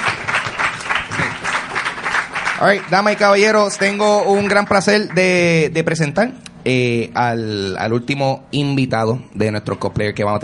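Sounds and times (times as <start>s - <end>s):
audience applause: 0.0s - 5.4s
speech: 2.6s - 10.4s.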